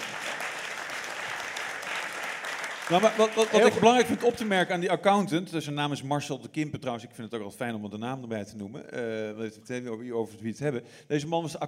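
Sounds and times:
crowd clapping: 0.0 - 4.8
speech: 2.9 - 11.6.

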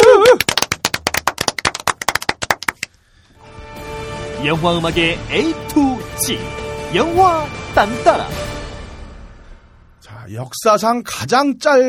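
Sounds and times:
hand clapping from a few people: 0.0 - 3.0
speech: 4.4 - 8.6, 10.3 - 11.8.

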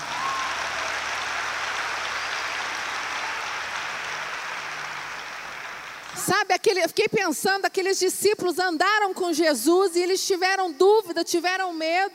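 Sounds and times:
audience applause: 0.0 - 6.3
speech: 6.3 - 12.1.

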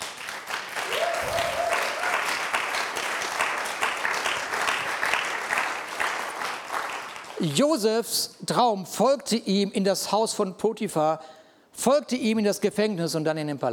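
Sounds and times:
audience applause: 0.0 - 7.6
speech: 7.4 - 13.7.

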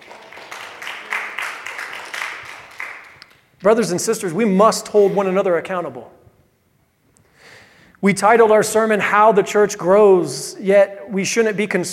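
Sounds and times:
audience applause: 0.0 - 3.4
speech: 3.6 - 6.2, 8.0 - 11.9.

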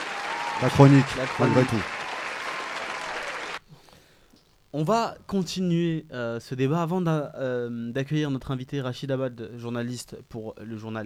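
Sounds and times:
audience applause: 0.0 - 3.6
speech: 0.6 - 2.0, 4.7 - 11.0.

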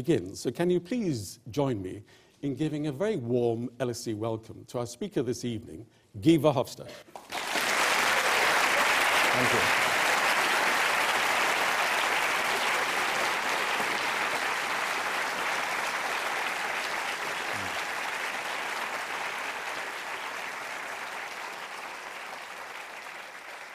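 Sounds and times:
speech: 0.0 - 7.4, 9.4 - 9.8
audience applause: 7.1 - 23.7.

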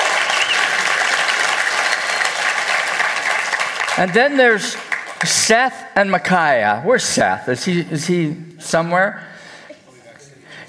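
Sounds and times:
audience applause for couple: 0.0 - 5.5
speech: 4.0 - 9.3.

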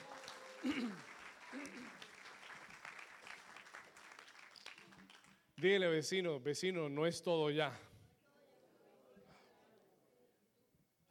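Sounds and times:
audience applause: 0.0 - 5.4
speech: 0.6 - 2.0, 5.6 - 7.9.

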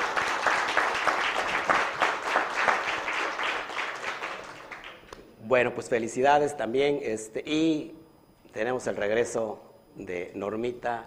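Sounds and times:
crowd applause: 0.0 - 5.0
speech: 5.5 - 11.0.

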